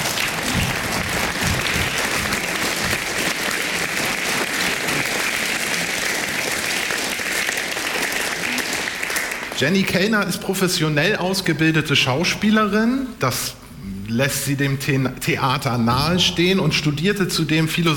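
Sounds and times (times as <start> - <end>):
audience applause: 0.0 - 9.8
speech: 9.6 - 17.9.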